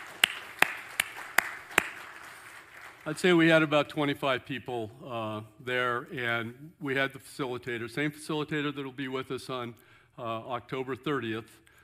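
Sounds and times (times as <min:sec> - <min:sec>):
round of applause: 0:00.0 - 0:03.4
speech: 0:03.1 - 0:11.6.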